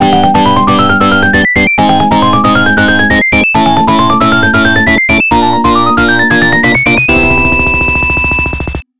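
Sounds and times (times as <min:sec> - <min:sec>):
arcade continue sound: 0:00.0 - 0:08.9.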